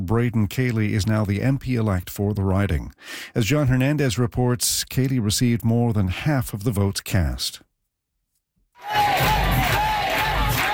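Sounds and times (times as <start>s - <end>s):
speech: 0.1s - 7.7s
crowd cheering at election night watch party at a Lonsdale pub: 8.8s - 10.7s.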